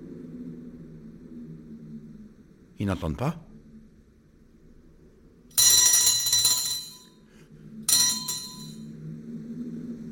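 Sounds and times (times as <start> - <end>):
low steady hum: 0.0 - 10.1
speech: 2.8 - 3.5
small hand bell ringing: 5.6 - 7.1, 7.9 - 8.8.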